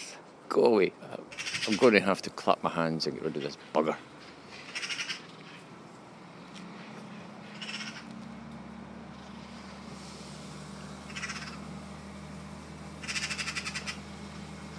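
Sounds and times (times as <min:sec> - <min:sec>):
low engine rumble: 0:00.0 - 0:14.7
speech: 0:00.5 - 0:04.1
magpie chattering: 0:01.3 - 0:01.9, 0:04.5 - 0:05.5, 0:07.4 - 0:08.1, 0:11.1 - 0:11.6, 0:13.0 - 0:14.0.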